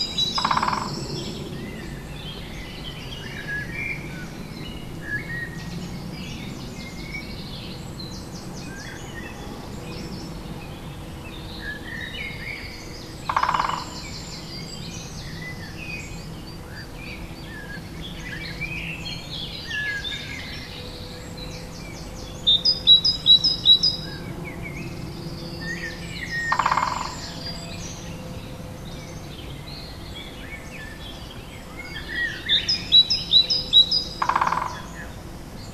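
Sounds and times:
woodpecker near the lone: 0.0 - 1.2, 13.2 - 14.2, 26.2 - 27.6, 32.2 - 35.2
other birds near the lone: 0.0 - 35.7.

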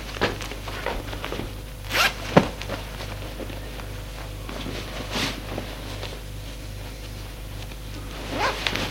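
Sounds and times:
rustling of clothing of a man undressing: 0.1 - 8.8
zipper pulls of a man undressing: 1.8 - 2.2, 8.2 - 8.8.

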